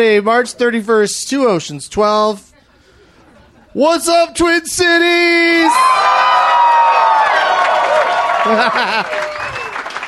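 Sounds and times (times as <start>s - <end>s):
speech: 0.0s - 2.5s, 3.7s - 6.6s, 8.4s - 9.4s
laughter: 2.8s - 3.8s, 8.0s - 9.8s
live comedy crowd cheering and clapping: 5.6s - 10.0s
overlapping voices: 5.7s - 10.0s
whoops: 5.7s - 10.0s.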